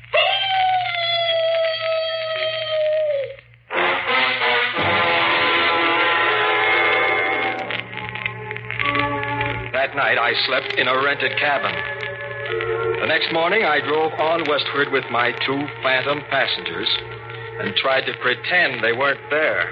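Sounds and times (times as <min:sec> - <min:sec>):
mournful dog howl imitated by voice: 0:00.1 - 0:03.4
low steady hum: 0:02.2 - 0:19.7
speech: 0:10.0 - 0:12.2, 0:13.0 - 0:19.7.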